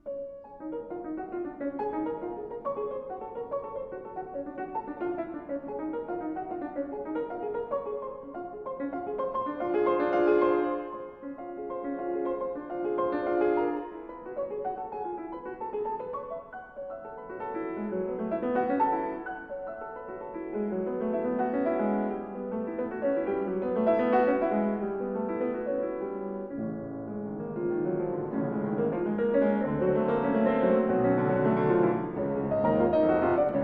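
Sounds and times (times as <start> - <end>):
piano etude: 0.0 - 33.6.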